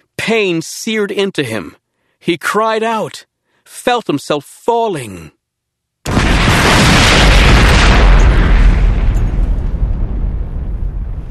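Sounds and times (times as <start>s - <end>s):
speech: 0.3s - 5.4s
crushing clap of thunder: 6.1s - 11.2s
explosion: 6.1s - 11.2s.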